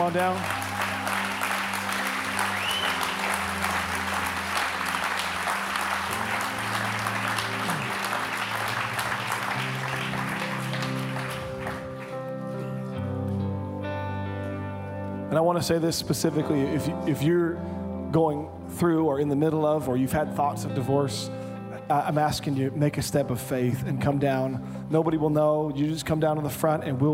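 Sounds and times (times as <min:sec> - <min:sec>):
audience clapping: 0:00.0 - 0:12.8
sustained organ or keyboard chords: 0:00.0 - 0:22.0
speech: 0:00.1 - 0:00.6, 0:15.4 - 0:27.1.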